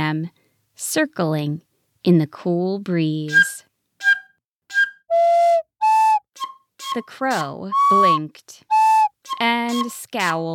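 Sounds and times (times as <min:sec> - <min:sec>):
speech: 0:00.1 - 0:03.7, 0:06.9 - 0:08.7, 0:09.3 - 0:10.5
recorder flute playing: 0:03.3 - 0:10.2.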